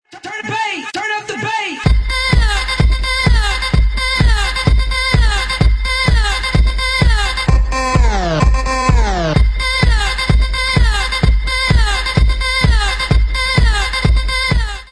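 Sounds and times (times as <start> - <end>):
moombah remix: 0.1 - 14.8.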